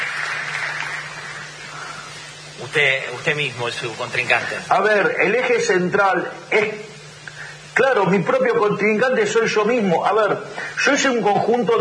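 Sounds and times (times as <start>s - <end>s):
audience applause: 0.0s - 1.7s
speech: 2.6s - 6.9s, 7.8s - 11.8s.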